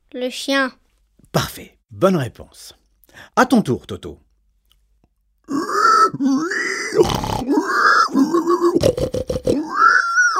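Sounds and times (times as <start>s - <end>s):
speech: 0.2s - 4.2s, 5.5s - 7.5s
human voice imitating pig grunting: 5.5s - 10.3s.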